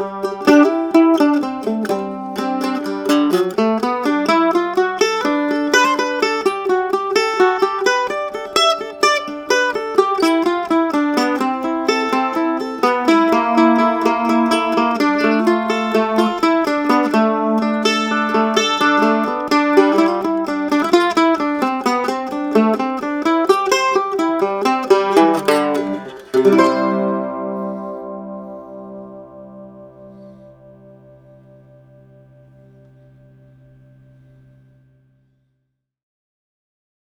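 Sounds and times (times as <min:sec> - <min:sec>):
mandola playing blues: 0:00.0 - 0:35.2.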